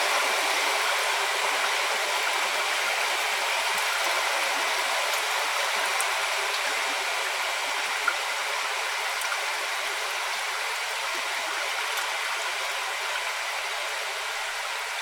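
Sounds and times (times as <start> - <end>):
rain: 0.0 - 15.0.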